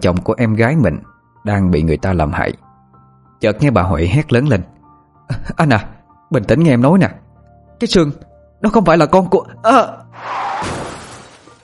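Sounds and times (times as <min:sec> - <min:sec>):
speech: 0:00.0 - 0:02.6, 0:03.4 - 0:07.2, 0:07.8 - 0:10.8
car crash heard over a phone line: 0:10.2 - 0:11.6.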